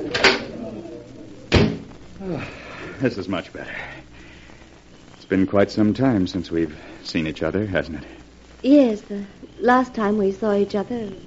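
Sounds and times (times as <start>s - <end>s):
low murmur: 0.0s - 11.2s
door opening onto a terrace: 1.5s - 1.9s
speech: 2.2s - 4.0s, 5.3s - 11.2s.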